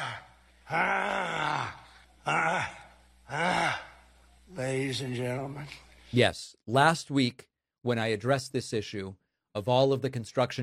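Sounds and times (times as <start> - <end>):
Trump grunting sound effect: 0.0 - 4.0
speech: 0.7 - 1.4, 4.9 - 10.6.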